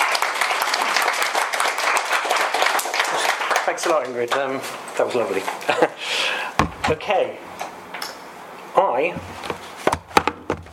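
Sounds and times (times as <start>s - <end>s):
audience round of applause: 0.0s - 4.5s
speech: 3.7s - 7.5s, 8.8s - 9.5s.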